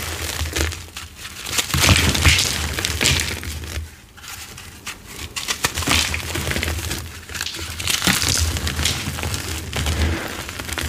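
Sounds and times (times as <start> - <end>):
dyed gym chalk and crisp cornstarch being crushed: 0.0 - 10.8.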